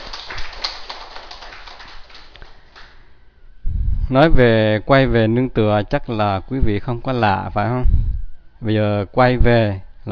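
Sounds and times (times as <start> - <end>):
audience applause: 0.0 - 3.0
speech: 4.1 - 8.0, 8.6 - 10.1.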